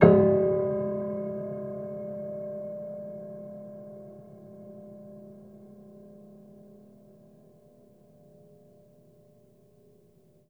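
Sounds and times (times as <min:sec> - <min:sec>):
low piano harmonics with pedal: 0:00.0 - 0:05.0.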